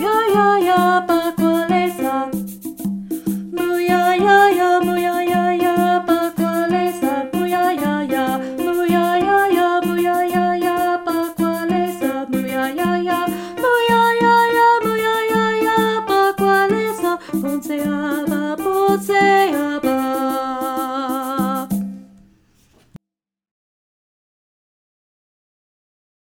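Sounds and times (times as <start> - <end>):
alto voice: 0.0 - 2.3, 3.5 - 21.7.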